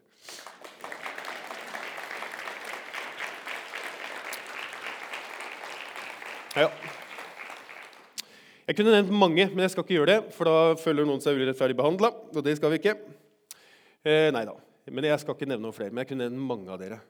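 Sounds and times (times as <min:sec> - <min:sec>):
audience applause: 0:00.0 - 0:08.2
speech: 0:06.6 - 0:07.0, 0:08.7 - 0:13.2, 0:14.0 - 0:17.0.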